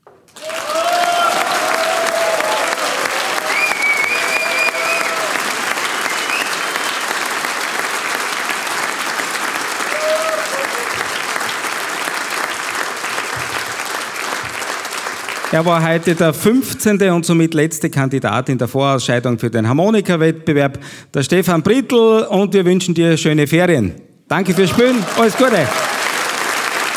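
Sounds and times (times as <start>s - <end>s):
audience applause for a choir: 0.0s - 16.3s, 24.3s - 26.9s
speech: 15.6s - 25.9s.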